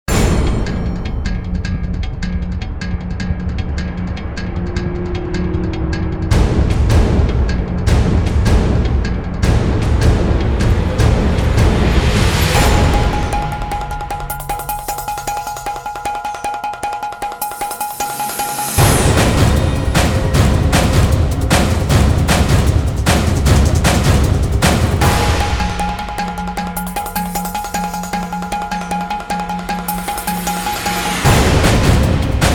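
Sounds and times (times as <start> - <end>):
drums: 0.0 - 32.5.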